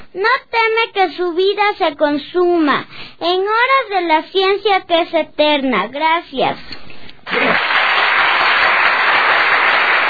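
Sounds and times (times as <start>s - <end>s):
speech: 0.1s - 7.6s
audience applause: 7.3s - 10.0s.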